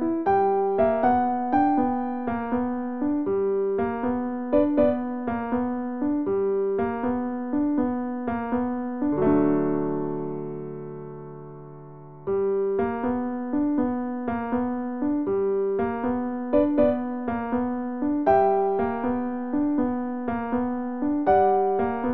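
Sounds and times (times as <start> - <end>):
piano piece: 0.0 - 22.1.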